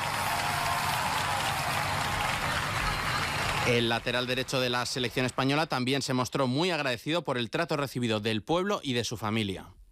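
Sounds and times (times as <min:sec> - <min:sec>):
audience applause: 0:00.0 - 0:05.8
speech: 0:03.7 - 0:09.8.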